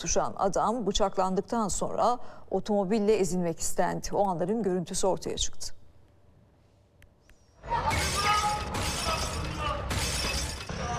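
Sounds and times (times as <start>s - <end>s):
speech: 0.0s - 5.8s
glass debris rattling and tinkling: 7.9s - 10.8s
shop window glass smashed with an axe in Sivas: 7.9s - 10.8s.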